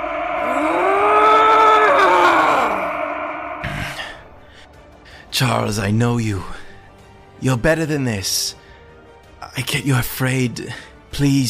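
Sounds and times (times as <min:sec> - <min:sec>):
roar of rage: 0:00.0 - 0:03.8
speech: 0:05.4 - 0:06.6, 0:07.4 - 0:08.6, 0:09.5 - 0:11.4.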